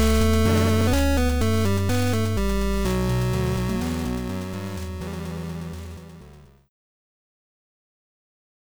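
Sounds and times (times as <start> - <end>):
chiptune music: 0.0 - 6.6.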